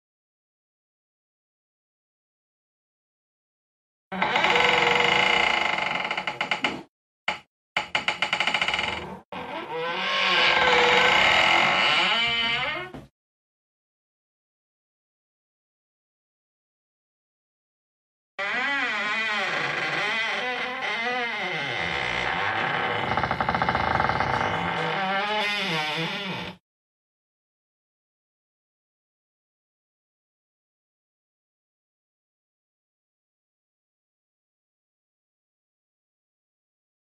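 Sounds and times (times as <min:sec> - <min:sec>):
door creaking: 0:04.1 - 0:13.1, 0:18.4 - 0:26.6.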